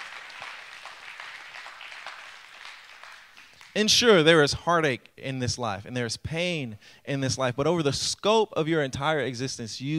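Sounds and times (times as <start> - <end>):
audience clapping: 0.0 - 4.0
speech: 3.8 - 9.9.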